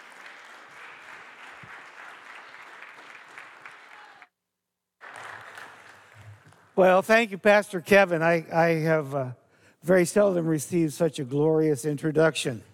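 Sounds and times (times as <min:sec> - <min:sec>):
audience applause: 0:00.0 - 0:04.3, 0:05.0 - 0:06.8
speech: 0:06.8 - 0:12.7.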